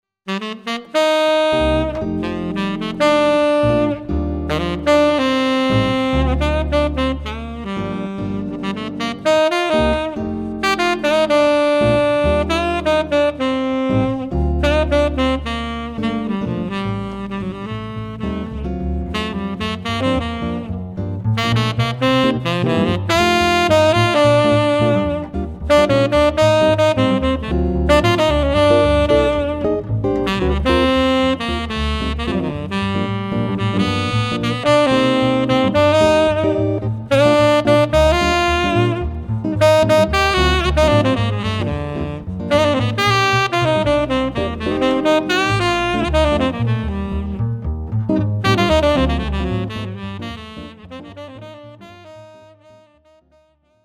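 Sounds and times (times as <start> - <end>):
jazz ensemble playing: 0.3 - 53.0.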